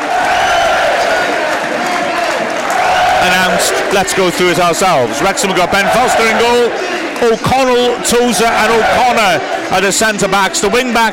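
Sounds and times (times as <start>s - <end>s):
Wrexham football crowd cheering inside the stadium: 0.0s - 11.1s
speech: 3.2s - 11.1s.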